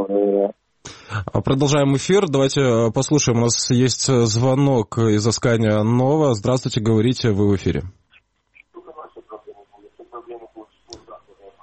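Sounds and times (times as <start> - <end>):
speech: 0.0 - 8.0
radio receiver playing over a telephone line: 8.7 - 11.6.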